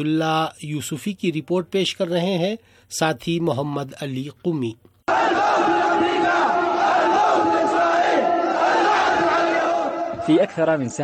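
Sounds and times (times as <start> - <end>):
speech: 0.0 - 5.4, 10.3 - 11.0
thousands of Yemeni protesters in Sanaa chanting slogans: 5.1 - 10.3.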